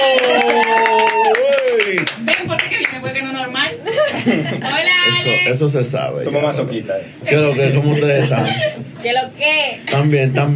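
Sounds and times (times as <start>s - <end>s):
small group clapping: 0.0s - 3.4s
laughter: 3.8s - 5.1s, 7.3s - 9.0s
speech: 4.2s - 10.5s.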